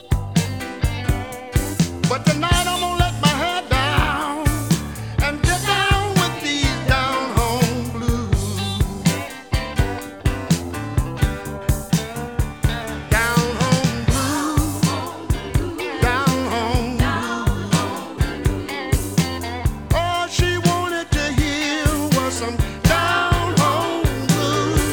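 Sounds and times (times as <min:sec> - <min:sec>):
blues music: 0:00.0 - 0:24.9.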